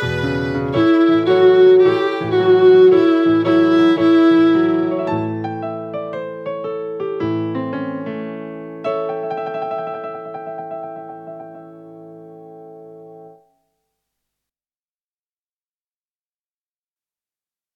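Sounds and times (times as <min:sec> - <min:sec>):
alto saxophone playing blues: 0:00.0 - 0:05.5.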